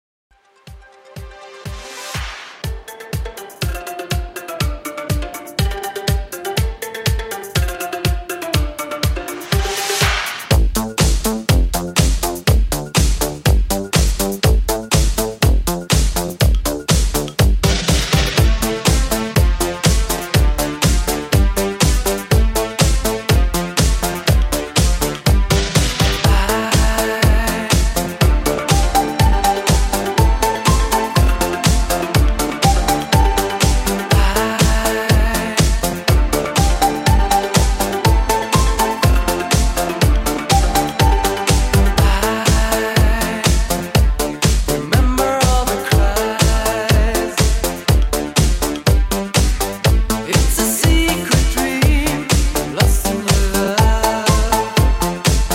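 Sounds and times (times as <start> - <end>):
80s classic drum beat at 122 BPM: 1.2 - 55.5.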